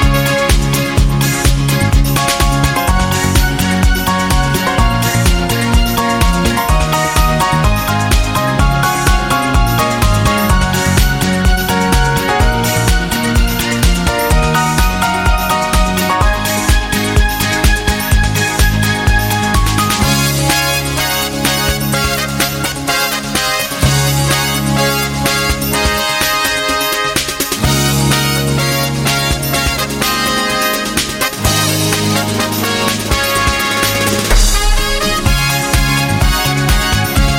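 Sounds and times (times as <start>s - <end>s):
background brass fanfare: 0.0s - 37.3s.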